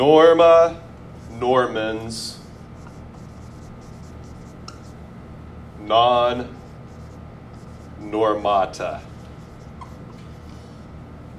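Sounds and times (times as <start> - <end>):
speech: 0.0 - 0.8, 1.4 - 2.4, 5.8 - 6.6, 8.0 - 9.1
pen strokes writing a short Latin phrase by hand: 2.4 - 5.0, 6.6 - 8.1, 9.0 - 10.6.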